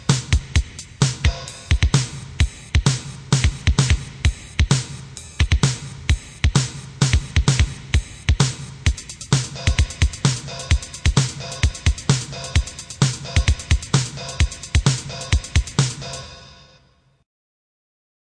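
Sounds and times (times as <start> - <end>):
rock style drum kit: 0.0 - 16.3.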